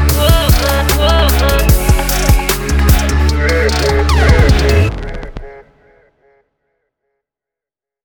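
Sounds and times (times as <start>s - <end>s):
party dance club music: 0.0s - 5.9s.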